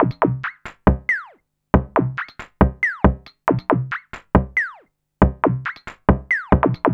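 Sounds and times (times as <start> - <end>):
electronic percussion: 0.0 - 6.9.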